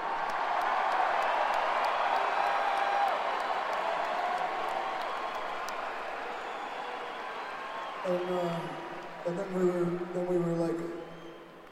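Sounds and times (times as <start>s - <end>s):
large crowd cheering and clapping: 0.0s - 11.7s
whistles and whoops: 6.2s - 8.1s, 11.0s - 11.6s
speech: 8.1s - 11.0s.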